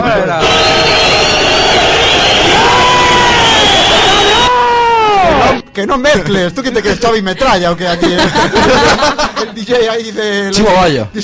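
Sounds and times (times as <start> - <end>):
crowd whistling sound effect: 0.4 - 5.6
speech: 5.8 - 11.2
laughter: 6.2 - 10.1.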